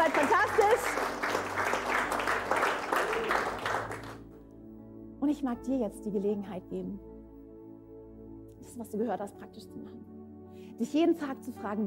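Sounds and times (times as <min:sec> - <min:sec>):
audience applause: 0:00.0 - 0:04.2
speech: 0:05.4 - 0:07.1, 0:08.8 - 0:10.1, 0:10.8 - 0:11.8.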